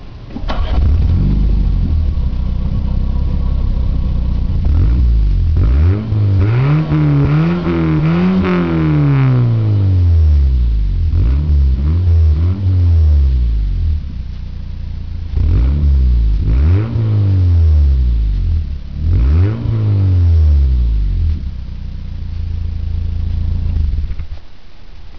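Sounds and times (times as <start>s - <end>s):
vehicle exhaust: 0.0s - 24.3s.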